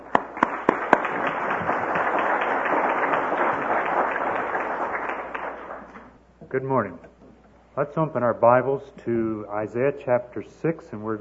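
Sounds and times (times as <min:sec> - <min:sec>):
church congregation applauding to welcome a speaker: 0:00.0 - 0:06.2
speech: 0:06.5 - 0:07.1, 0:07.8 - 0:11.1.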